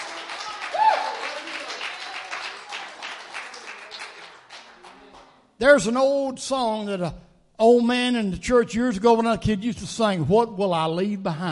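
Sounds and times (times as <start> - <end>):
crowd clapping in a large room: 0.0 - 5.4
speech: 5.6 - 11.4.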